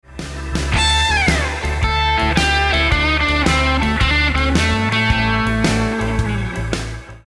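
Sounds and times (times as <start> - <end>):
guitar licks: 0.6 - 7.2.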